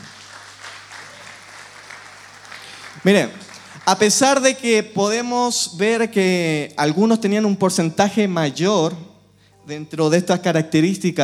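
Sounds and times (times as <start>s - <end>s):
audience applause: 0.0s - 4.7s
speech: 3.0s - 9.1s, 9.7s - 11.2s.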